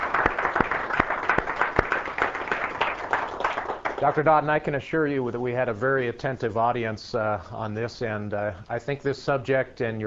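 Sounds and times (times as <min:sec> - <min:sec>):
audience round of applause: 0:00.0 - 0:04.2
speech: 0:04.0 - 0:10.0.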